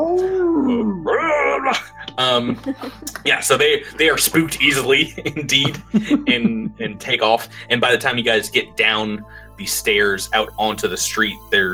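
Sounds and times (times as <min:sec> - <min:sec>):
person imitating an alien desert raider yell: 0:00.0 - 0:01.9
speech: 0:01.6 - 0:11.7
laughter: 0:01.7 - 0:03.5, 0:04.6 - 0:07.0.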